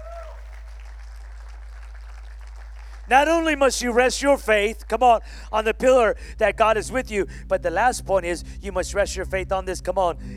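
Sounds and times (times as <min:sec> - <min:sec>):
church congregation clapping hands: 0:00.0 - 0:05.0
speech: 0:03.1 - 0:10.3.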